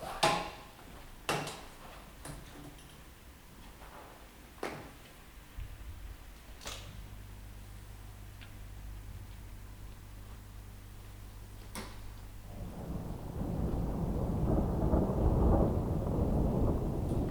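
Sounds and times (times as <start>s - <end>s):
rain: 12.2s - 17.2s
thunder: 12.3s - 17.2s.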